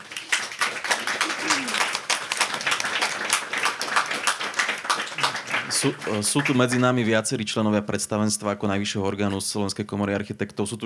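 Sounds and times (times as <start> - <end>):
audience applause: 0.0 - 7.0
speech: 5.7 - 10.8.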